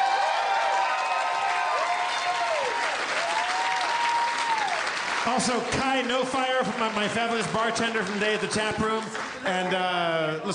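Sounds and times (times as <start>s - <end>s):
faint whoops and cheers: 0.0s - 4.9s
audience applause: 0.0s - 10.0s
speech: 5.2s - 10.5s.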